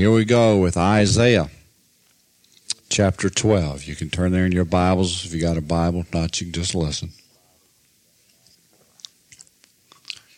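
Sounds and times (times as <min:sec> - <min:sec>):
speech: 0:00.0 - 0:01.6, 0:02.9 - 0:07.2
person drinking water: 0:08.7 - 0:10.3.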